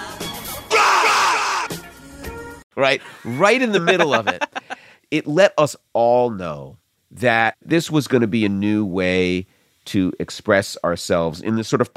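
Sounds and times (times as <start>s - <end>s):
sampled rapper scream inserted into song: 0.6s - 1.8s
speech: 2.8s - 11.9s
laughter: 3.2s - 4.8s.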